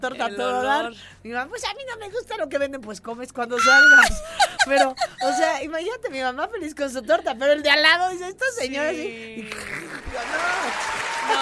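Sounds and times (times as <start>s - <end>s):
speech: 0.0s - 11.4s
laughter: 3.8s - 5.5s, 10.0s - 11.4s
applause: 10.0s - 11.4s.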